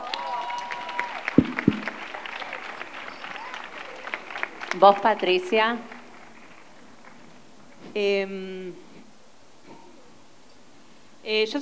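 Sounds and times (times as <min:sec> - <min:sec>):
applause: 0:00.0 - 0:07.5
speech: 0:04.8 - 0:05.9, 0:07.9 - 0:08.8, 0:11.2 - 0:11.6.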